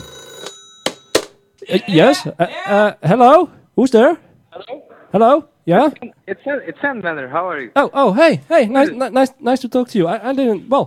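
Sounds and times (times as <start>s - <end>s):
telephone ringing indoors: 0.0s - 1.6s
speech: 1.7s - 10.8s.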